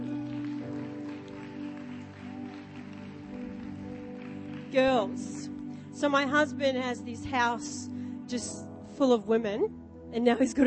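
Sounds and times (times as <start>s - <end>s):
audience clapping: 0.0s - 5.8s
speech: 4.7s - 10.6s.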